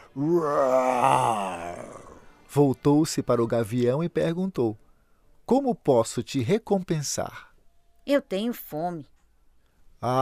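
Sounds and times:
speech: 0:00.2 - 0:01.4, 0:02.5 - 0:04.8, 0:05.5 - 0:09.1, 0:10.0 - 0:10.1
human voice imitating a jaguar's roar: 0:00.2 - 0:02.2.

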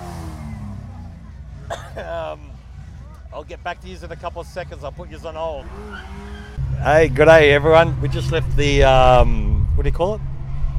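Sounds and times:
turbocharged Holden VL engine revving: 0:00.0 - 0:01.7, 0:04.1 - 0:10.7
speech: 0:02.0 - 0:02.6, 0:03.3 - 0:10.3.

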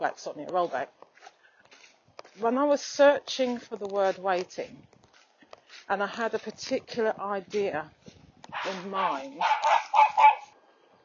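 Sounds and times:
speech: 0:00.0 - 0:01.4, 0:02.4 - 0:04.9, 0:05.9 - 0:10.3
dog barking while passing dog walkers: 0:08.5 - 0:10.5.

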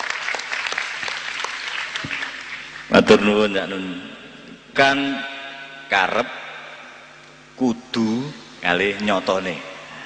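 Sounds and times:
audience applauding a regent at a gathering: 0:00.0 - 0:02.9
speech: 0:02.9 - 0:04.2, 0:04.8 - 0:05.3, 0:05.9 - 0:06.4, 0:07.6 - 0:09.7.

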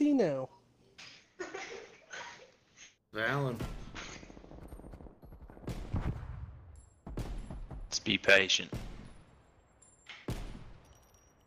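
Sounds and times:
speech: 0:00.2 - 0:00.5, 0:03.1 - 0:03.8, 0:08.1 - 0:08.8
gunshot through a wall in a first-person shooter video game: 0:03.6 - 0:07.9, 0:08.7 - 0:09.4, 0:10.2 - 0:10.9.

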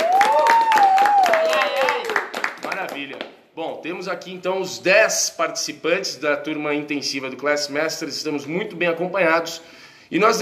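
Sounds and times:
round of applause: 0:00.0 - 0:03.3
speech: 0:03.8 - 0:10.4.

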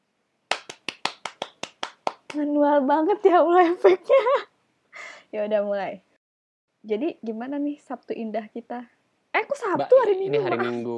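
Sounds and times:
hand claps: 0:00.5 - 0:02.5
speech: 0:02.3 - 0:04.5, 0:05.3 - 0:06.1, 0:06.8 - 0:10.9.

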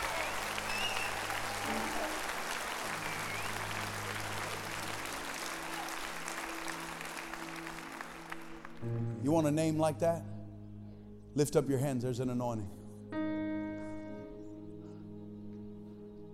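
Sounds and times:
audience clapping hands: 0:00.0 - 0:09.0
sustained low keyboard chords: 0:00.0 - 0:16.3
speech: 0:09.3 - 0:10.3, 0:11.4 - 0:12.8.

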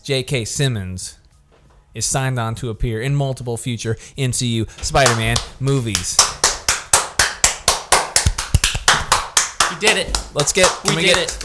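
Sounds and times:
speech: 0:00.0 - 0:01.2, 0:02.0 - 0:06.3, 0:09.8 - 0:11.4
hands clapping: 0:04.9 - 0:11.4.

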